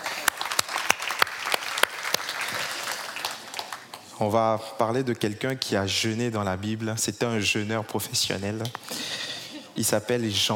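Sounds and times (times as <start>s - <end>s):
audience applause: 0.0s - 4.0s
speech: 4.2s - 9.2s, 9.8s - 10.5s.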